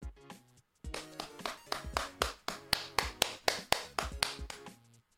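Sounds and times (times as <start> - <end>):
hands clapping: 0.9 - 4.8.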